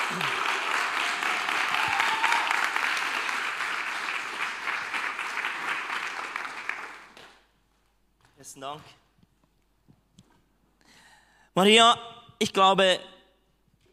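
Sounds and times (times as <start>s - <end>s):
audience applause: 0.0s - 7.4s
speech: 0.1s - 0.4s, 8.5s - 9.0s, 11.6s - 13.1s.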